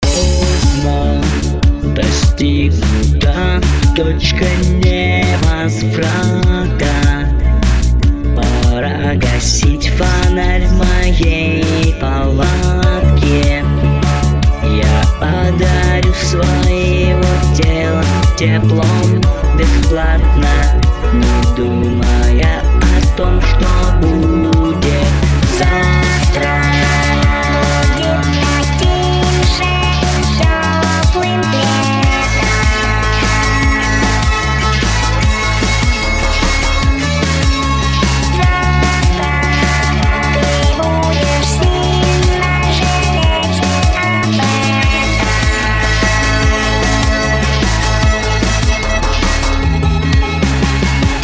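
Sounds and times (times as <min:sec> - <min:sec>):
lyrical post-punk track: 0:00.0 - 0:51.2.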